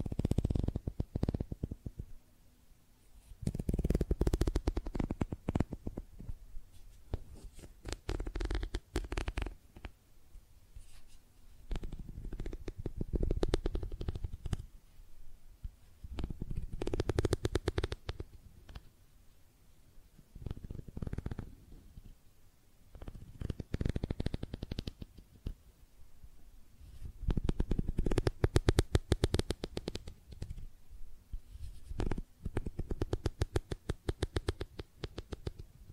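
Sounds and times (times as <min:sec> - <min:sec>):
makeup tapping and scratching: 0:00.0 - 0:02.1, 0:03.4 - 0:06.3, 0:07.1 - 0:09.9, 0:11.7 - 0:14.6, 0:16.1 - 0:18.9, 0:20.4 - 0:21.4, 0:23.0 - 0:25.6, 0:27.3 - 0:30.6, 0:31.7 - 0:35.7.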